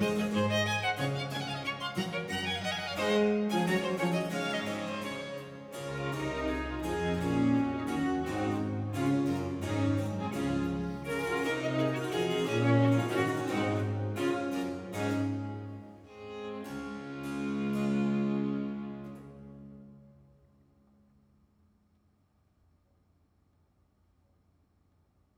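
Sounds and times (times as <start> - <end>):
concerto grosso in D major: 0.0 - 19.8.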